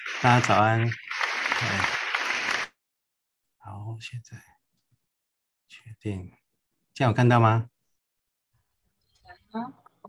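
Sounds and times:
applause: 0.0s - 2.8s
speech: 0.2s - 1.0s, 1.6s - 2.0s, 3.6s - 4.5s, 5.7s - 6.4s, 7.0s - 7.8s, 9.5s - 9.8s.

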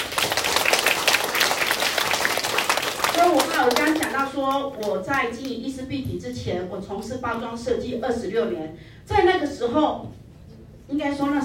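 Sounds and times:
audience applause: 0.0s - 4.1s
speech: 3.2s - 10.2s, 10.9s - 11.4s.

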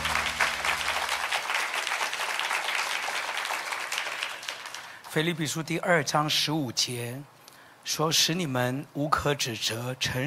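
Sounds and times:
low hum: 0.0s - 1.3s
audience applause: 0.0s - 5.1s
speech: 5.2s - 7.3s, 7.9s - 10.2s.

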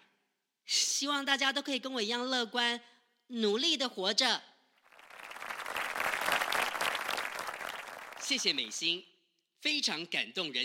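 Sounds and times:
speech: 1.0s - 4.5s, 8.3s - 10.6s
audience applause: 4.9s - 9.0s.

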